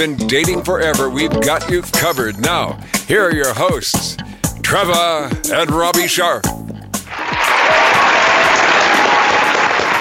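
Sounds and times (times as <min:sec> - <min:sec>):
speech: 0:00.0 - 0:08.1
audience applause: 0:07.1 - 0:10.0.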